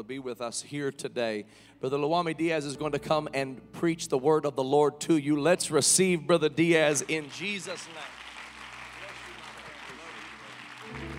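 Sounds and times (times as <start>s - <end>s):
speech: 0.0s - 8.2s
audience clapping hands: 6.8s - 11.1s.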